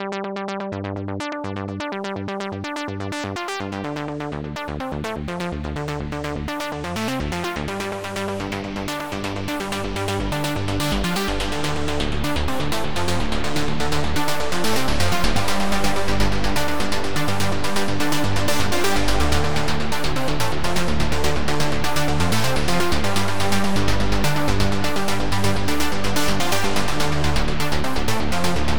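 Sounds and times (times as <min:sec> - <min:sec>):
trance morph: 0:00.0 - 0:28.7.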